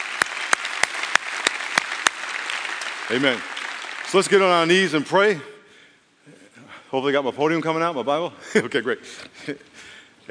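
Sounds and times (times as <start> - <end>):
audience applause: 0.0 - 5.0
speech: 3.1 - 3.5, 4.1 - 5.5, 6.9 - 10.2.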